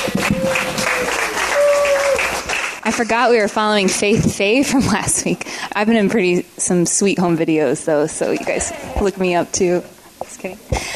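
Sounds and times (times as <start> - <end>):
church congregation applauding to welcome speakers to the stage: 0.0 - 3.1
speech: 2.9 - 10.9.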